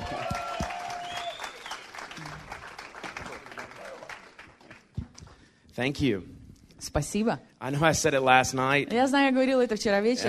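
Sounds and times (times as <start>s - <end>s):
enthusiastic audience applause greeting a guest: 0.0s - 5.2s
speech: 5.8s - 10.2s.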